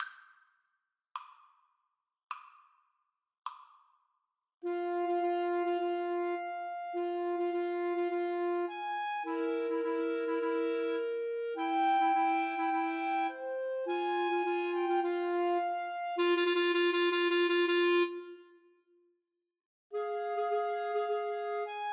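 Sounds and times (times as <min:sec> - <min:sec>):
clarinet trio karaoke backing track: 0:04.6 - 0:18.4, 0:20.0 - 0:21.9.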